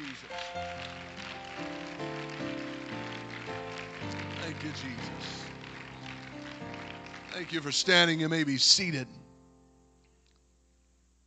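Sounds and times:
audience clapping hands: 0.0s - 9.0s
speech: 4.6s - 5.4s, 7.4s - 9.2s.

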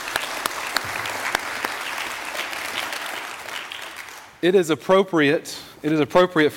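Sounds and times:
audience clapping: 0.0s - 4.4s
speech: 4.4s - 6.5s.

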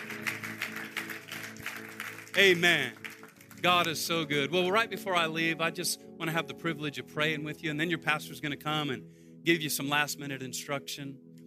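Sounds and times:
audience clapping hands: 0.0s - 4.6s
speech: 2.4s - 3.0s, 3.6s - 11.2s.

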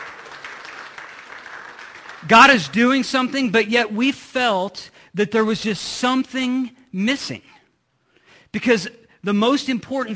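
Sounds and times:
audience round of applause: 0.0s - 2.7s
speech: 2.2s - 7.5s, 8.5s - 10.1s.

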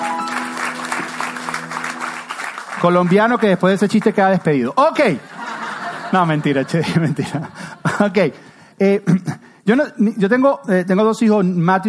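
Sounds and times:
audience applause: 0.0s - 4.5s
speech: 2.8s - 5.3s, 6.1s - 11.8s
laughter: 5.2s - 8.2s.

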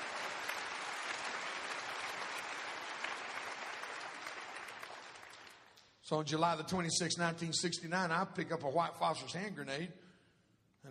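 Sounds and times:
audience clapping: 0.0s - 6.0s
speech: 6.1s - 10.0s.

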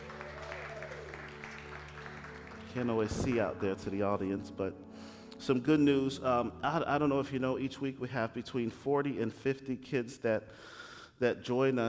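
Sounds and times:
audience applause: 0.0s - 3.8s
speech: 2.8s - 11.8s.

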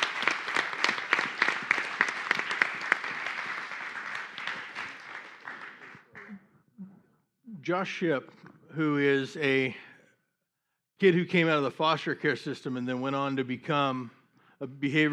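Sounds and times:
audience applause: 0.0s - 6.4s
speech: 7.7s - 9.8s, 11.0s - 15.1s.

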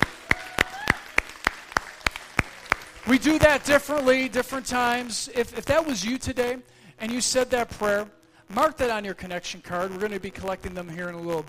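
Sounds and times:
audience hand clapping: 0.0s - 4.8s
speech: 3.1s - 11.4s.

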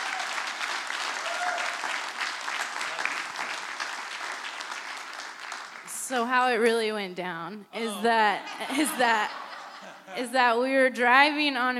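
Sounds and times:
sustained applause from a large crowd: 0.0s - 6.1s
speech: 6.1s - 9.4s, 10.1s - 11.7s
laughter: 7.8s - 10.4s.

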